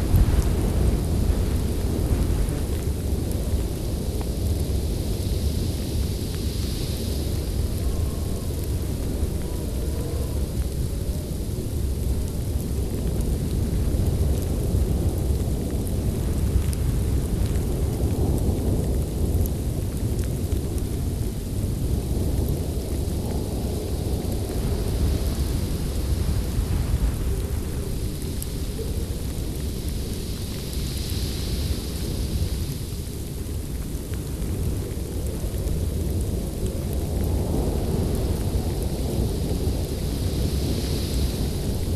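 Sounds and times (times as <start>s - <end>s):
snow blizzard wind roaring: 0.0s - 41.9s.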